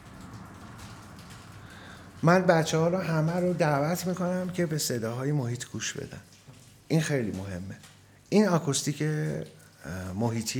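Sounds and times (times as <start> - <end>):
faint low rumble: 0.0 - 3.7
steady rain falling: 0.0 - 10.5
speech: 2.2 - 10.5.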